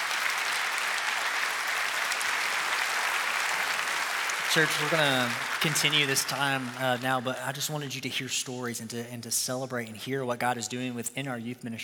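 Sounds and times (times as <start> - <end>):
large indoor crowd applause: 0.0 - 8.0
speech: 4.5 - 11.8.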